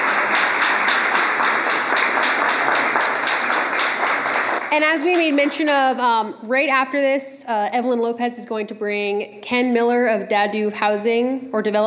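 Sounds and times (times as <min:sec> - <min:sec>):
audience applause: 0:00.0 - 0:05.6
speech: 0:04.7 - 0:11.8.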